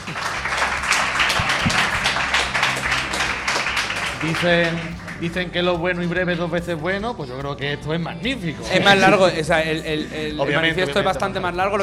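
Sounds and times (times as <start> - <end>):
audience applause: 0.0 - 5.4
speech: 4.2 - 11.8.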